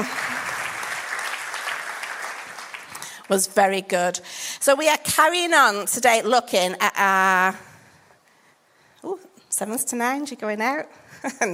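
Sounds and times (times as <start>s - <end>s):
crowd clapping: 0.0s - 3.4s
speech: 3.3s - 7.7s, 9.1s - 11.5s.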